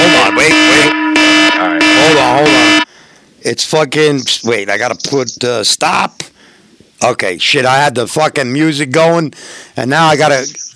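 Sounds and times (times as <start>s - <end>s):
alarm clock buzzing: 0.0s - 2.9s
speech: 3.5s - 6.4s, 7.0s - 10.7s.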